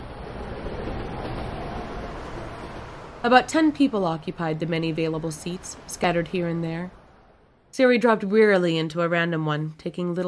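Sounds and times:
train arriving at station: 0:00.0 - 0:08.1
speech: 0:03.2 - 0:07.0, 0:07.7 - 0:10.2.

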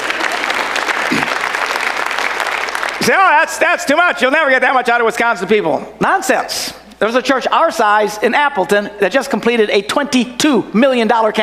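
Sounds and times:
people clapping: 0:00.0 - 0:03.6
speech: 0:03.1 - 0:11.4.

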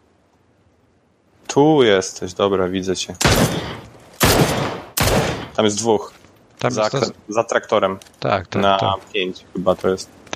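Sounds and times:
speech: 0:01.5 - 0:03.6, 0:05.6 - 0:10.3
gunfire bursts: 0:03.2 - 0:05.6.

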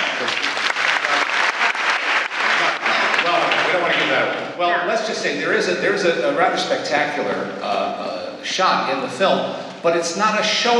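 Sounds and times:
audience applause: 0:00.0 - 0:04.4
speech: 0:04.6 - 0:10.7.

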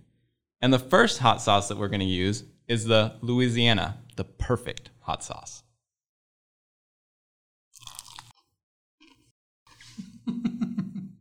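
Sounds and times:
speech: 0:00.6 - 0:05.7
loud crunching while eating: 0:07.8 - 0:08.4
laughter: 0:09.9 - 0:11.1.

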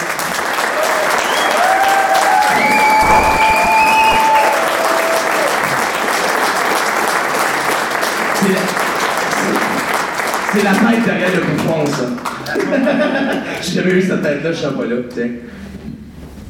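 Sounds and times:
audience applause: 0:00.0 - 0:13.2
audience cheers: 0:00.4 - 0:06.6
audience whistles: 0:01.1 - 0:05.5
speech: 0:10.6 - 0:15.7
laughter: 0:12.5 - 0:13.6.

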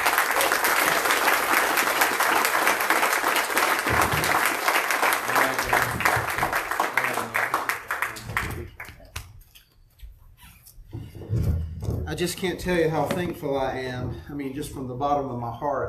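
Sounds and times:
audience applause: 0:00.0 - 0:09.1
speech: 0:12.2 - 0:15.8.

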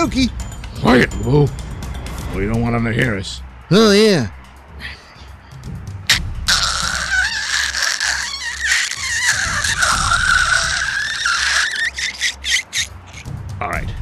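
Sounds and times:
speech: 0:00.0 - 0:01.7, 0:02.3 - 0:05.0
glass cutter scoring a window pane: 0:06.5 - 0:13.2.

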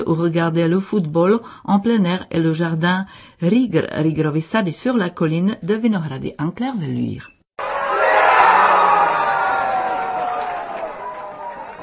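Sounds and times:
speech: 0:00.0 - 0:07.3
football supporters in a Prague beer garden cheering after the Netherlands' second goal: 0:07.6 - 0:11.8.

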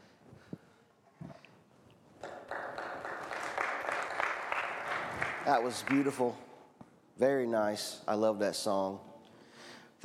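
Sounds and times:
audience applause: 0:02.2 - 0:06.2
speech: 0:05.5 - 0:06.5, 0:07.2 - 0:09.1.

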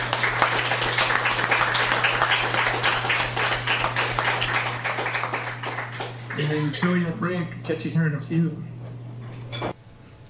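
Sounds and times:
audience applause: 0:00.0 - 0:07.2
speech: 0:06.5 - 0:08.8.

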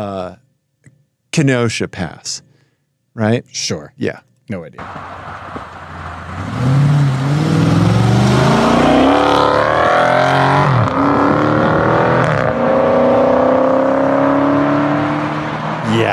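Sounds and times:
speech: 0:00.0 - 0:00.4, 0:01.4 - 0:02.5, 0:03.2 - 0:05.7
Dodge Challenger Scat Pack exhaust accelerating while pulling out at Kenosha Pass: 0:04.8 - 0:16.1.

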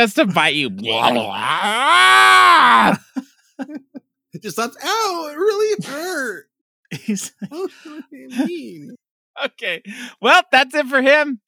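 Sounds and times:
speech: 0:00.0 - 0:03.8, 0:04.4 - 0:11.4
person imitating a creature's roar: 0:00.9 - 0:03.0
laughter: 0:02.8 - 0:09.0.

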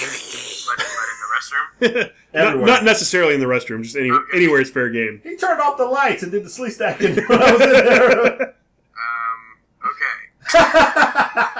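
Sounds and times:
person imitating a creature's hiss: 0:00.0 - 0:00.9
speech: 0:01.4 - 0:08.6, 0:09.9 - 0:11.5
laughter: 0:06.9 - 0:08.6, 0:10.4 - 0:11.5.

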